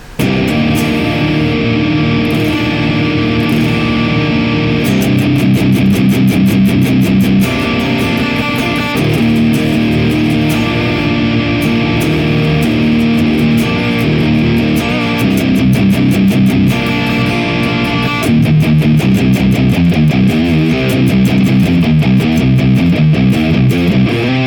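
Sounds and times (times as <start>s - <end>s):
distorted electric guitar through Bossi R200 amp model in Neural DSP Archetype: 0.0s - 24.4s.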